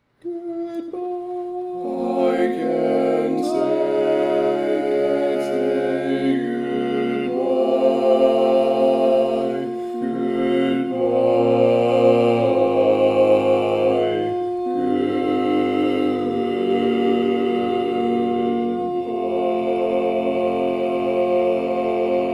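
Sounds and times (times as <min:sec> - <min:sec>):
barbershop tags all parts singing: 0:00.2 - 0:22.3.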